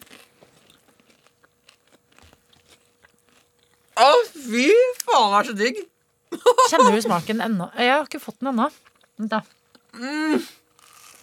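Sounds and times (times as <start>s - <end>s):
chewing and crunching toast with barbecue sauce: 0.0s - 4.0s, 8.7s - 10.0s, 10.6s - 11.2s
speech: 4.0s - 10.6s
laughter: 6.4s - 7.5s.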